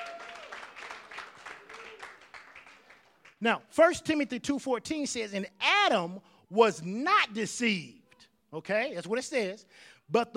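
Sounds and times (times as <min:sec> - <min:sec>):
audience clapping: 0:00.0 - 0:03.4
speech: 0:03.4 - 0:10.3.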